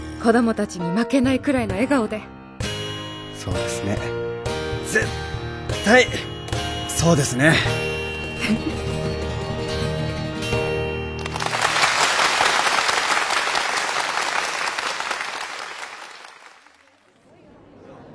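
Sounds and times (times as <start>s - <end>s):
speech: 0.2s - 2.4s, 3.4s - 4.2s, 4.9s - 6.3s, 7.0s - 7.8s, 8.4s - 9.0s
sustained music: 0.4s - 13.4s
audience applause from a large crowd: 11.2s - 17.2s.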